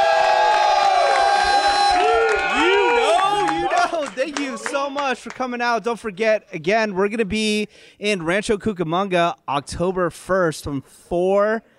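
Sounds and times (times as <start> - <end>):
live audience cheering: 0.0 - 5.5
live audience clapping: 0.0 - 5.6
speech: 4.8 - 11.7.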